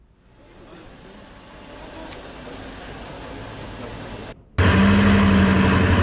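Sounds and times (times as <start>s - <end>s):
Bugatti Chiron supercar engine idling in Monaco: 2.1s - 6.0s.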